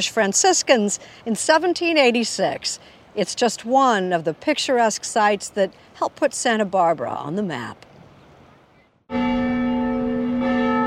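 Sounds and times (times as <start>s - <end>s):
speech: 0.0s - 7.9s, 9.1s - 9.3s
mission church bells ringing: 9.1s - 10.8s.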